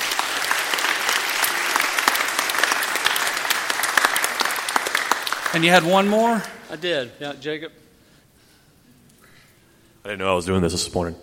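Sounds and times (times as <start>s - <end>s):
crowd clapping: 0.0s - 6.8s
speech: 5.5s - 7.8s, 10.0s - 11.2s.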